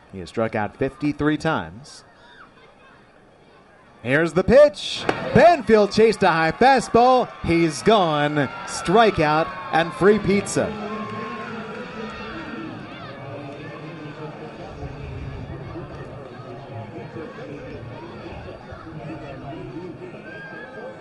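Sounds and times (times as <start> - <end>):
speech: 0.1 - 2.1, 4.0 - 10.9
baseball stadium crowd cheering: 3.3 - 21.0.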